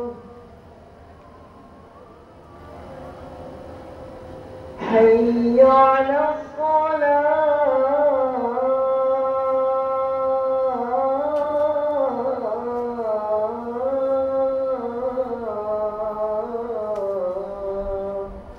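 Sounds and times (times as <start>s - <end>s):
call to prayer in Jogja Indonesia: 0.0s - 0.5s, 4.7s - 18.5s.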